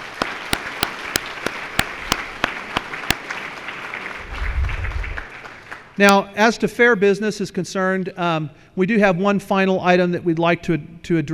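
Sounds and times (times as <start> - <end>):
audience applause: 0.0 - 6.0
speech: 6.0 - 11.3.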